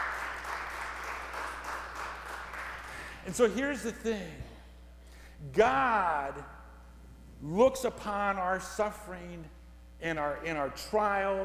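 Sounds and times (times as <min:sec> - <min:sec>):
audience clapping: 0:00.0 - 0:03.2
speech: 0:03.2 - 0:04.5, 0:05.4 - 0:06.6, 0:07.4 - 0:11.4.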